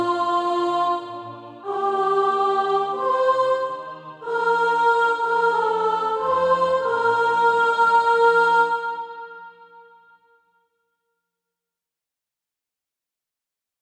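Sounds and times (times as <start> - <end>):
soprano singing SATB practice music: 0.0 - 10.2.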